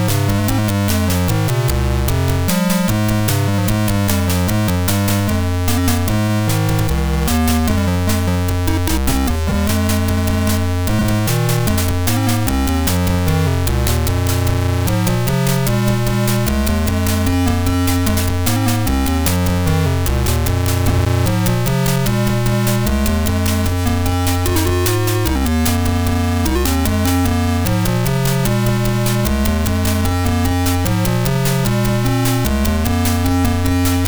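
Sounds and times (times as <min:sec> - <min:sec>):
sound chip electro music: 0:00.0 - 0:34.0.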